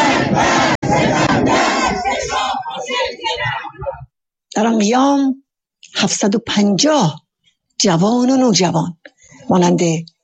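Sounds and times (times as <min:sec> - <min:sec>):
protest crowd chanting slogans: 0:00.0 - 0:04.1
speech: 0:04.6 - 0:07.2, 0:07.8 - 0:10.1.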